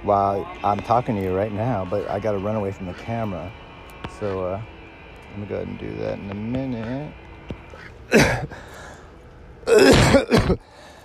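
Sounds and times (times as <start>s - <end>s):
speech: 0.0s - 7.2s, 8.1s - 8.8s, 9.7s - 10.7s
person coughing and clearing their throat: 8.1s - 8.6s, 9.7s - 10.7s.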